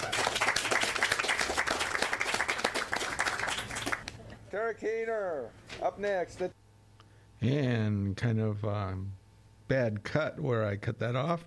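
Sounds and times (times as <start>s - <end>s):
audience applause: 0.0s - 4.2s
speech: 4.6s - 6.6s, 7.4s - 11.4s.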